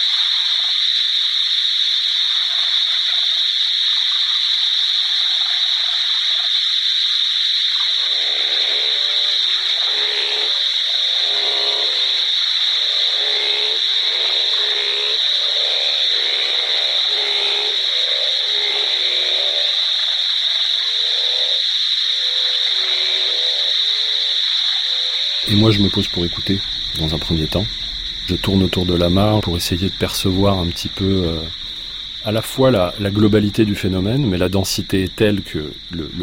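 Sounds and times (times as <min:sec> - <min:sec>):
dense frog chorus trilling at a pond: 0:00.0 - 0:36.2
speech: 0:25.7 - 0:31.6, 0:32.2 - 0:36.2.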